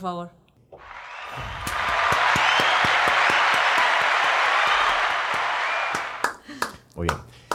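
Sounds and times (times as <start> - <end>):
speech: 0.0 - 1.6, 7.0 - 7.4
crowd applause sound effect: 0.8 - 6.8.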